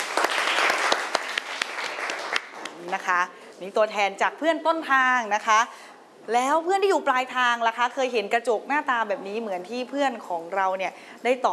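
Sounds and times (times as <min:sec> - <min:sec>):
classroom applause: 0:00.0 - 0:02.9
speech: 0:02.9 - 0:11.5.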